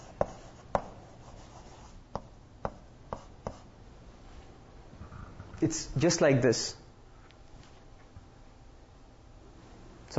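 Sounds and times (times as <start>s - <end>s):
writing on a board during a lesson: 0.0s - 3.7s
speech: 5.6s - 6.8s.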